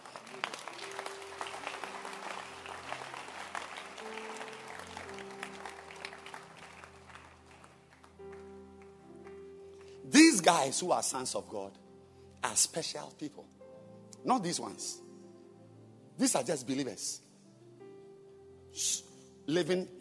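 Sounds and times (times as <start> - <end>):
audience clapping: 0.0 - 10.0
speech: 10.4 - 11.8, 12.5 - 13.6, 14.2 - 15.0, 16.2 - 17.2, 18.8 - 20.0.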